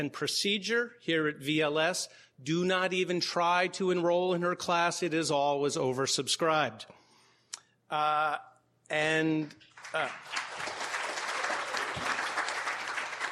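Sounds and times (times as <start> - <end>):
speech: 0.0 - 7.0, 7.9 - 10.5
audience applause: 9.8 - 13.2.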